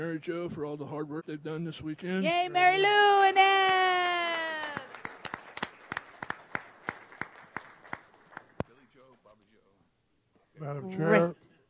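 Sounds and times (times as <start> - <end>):
speech: 0.0 - 3.8, 10.7 - 11.4
sparse clapping in a large room: 3.4 - 8.8.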